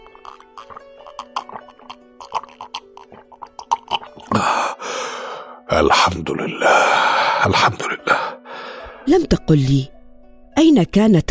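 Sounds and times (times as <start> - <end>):
person gulping water to quench thirst: 0.0 - 4.7
soft music: 0.0 - 11.2
breathy exhale of relief: 4.3 - 5.6, 8.1 - 9.0
speech: 5.8 - 8.2, 9.0 - 10.0, 10.6 - 11.2.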